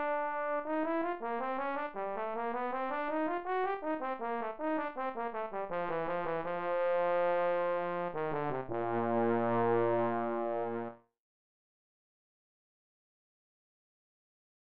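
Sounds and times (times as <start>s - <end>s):
trombone: 0.0s - 11.0s.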